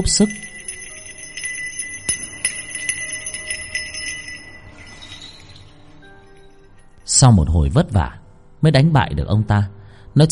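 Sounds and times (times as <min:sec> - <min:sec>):
speech: 0:00.0 - 0:00.5, 0:07.2 - 0:10.2
set of small bells jingling and ringing: 0:00.0 - 0:07.3.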